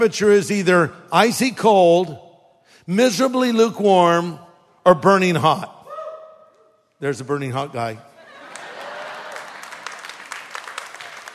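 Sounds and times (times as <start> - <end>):
speech: 0.0 - 2.2, 2.9 - 5.7, 7.0 - 8.1
audience applause: 8.4 - 11.3.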